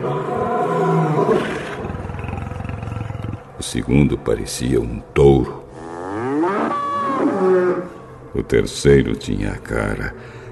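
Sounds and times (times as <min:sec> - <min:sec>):
lion roaring: 0:00.0 - 0:03.8, 0:05.7 - 0:08.0
speech: 0:03.7 - 0:05.6, 0:08.4 - 0:10.4.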